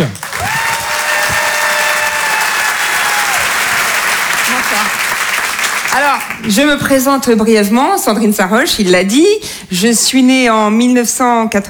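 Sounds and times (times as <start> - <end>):
speech: 0.0 - 0.2, 6.0 - 11.6
audience applause: 0.0 - 6.8.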